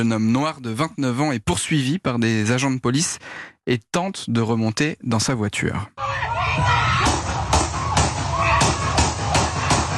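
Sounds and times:
speech: 0.0s - 7.1s
gunshots fired in a video: 7.0s - 9.9s.

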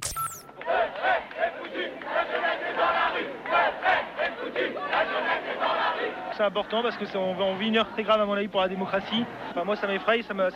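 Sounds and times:
large crowd chanting at the 2002 youth demonstrations in France against Jean-Marie Le Pen: 0.5s - 9.6s
speech: 6.4s - 10.5s.

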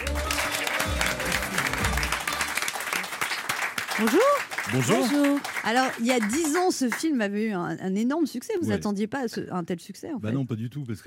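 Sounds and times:
sustained audience applause: 0.0s - 7.1s
speech: 4.0s - 11.0s.

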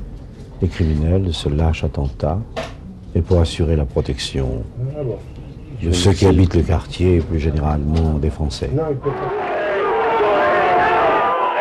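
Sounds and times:
speech: 0.6s - 9.4s
hostile crowd shouting and booing: 9.0s - 11.6s.

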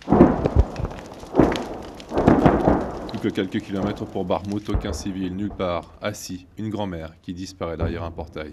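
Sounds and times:
Ukrainian artillery fire: 0.0s - 5.9s
Russian shell explosions: 0.0s - 6.2s, 7.7s - 8.5s
burning house crackling: 0.0s - 8.5s
speech: 3.2s - 8.5s.

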